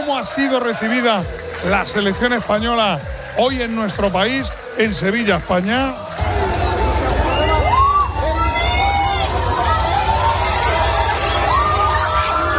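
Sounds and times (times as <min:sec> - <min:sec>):
fans cheering and shouting outside hotel: 0:00.0 - 0:12.5
speech: 0:00.1 - 0:06.2.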